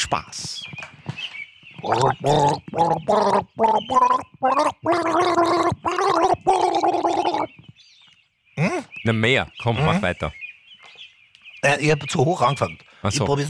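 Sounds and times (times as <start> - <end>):
speech: 0.1 - 1.1, 1.8 - 7.5, 8.6 - 10.4, 11.6 - 13.4
man gargling a tune with flower water: 1.8 - 7.5, 8.6 - 8.9.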